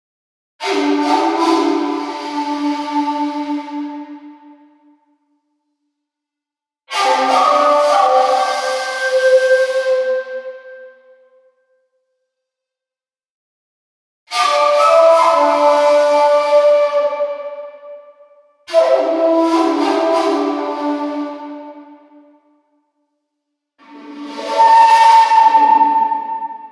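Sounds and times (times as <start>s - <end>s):
Amazon flutes: 0.6s - 5.4s, 6.9s - 11.8s, 14.3s - 22.6s, 23.8s - 26.7s.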